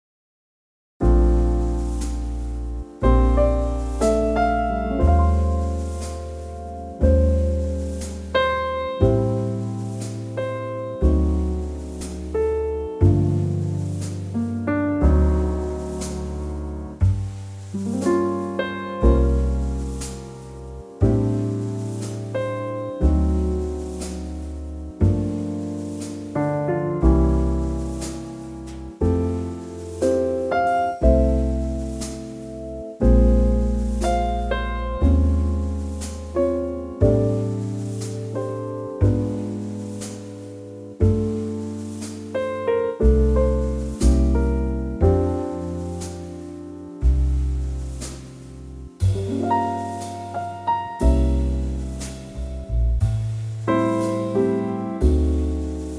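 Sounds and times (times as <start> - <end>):
instrumental trio in F: 1.0 - 55.9.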